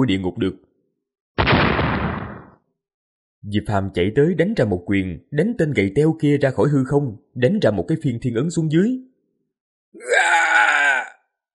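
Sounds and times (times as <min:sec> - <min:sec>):
speech: 0:00.0 - 0:00.7, 0:03.4 - 0:09.1, 0:09.9 - 0:10.5
man screaming in agony: 0:10.0 - 0:11.3.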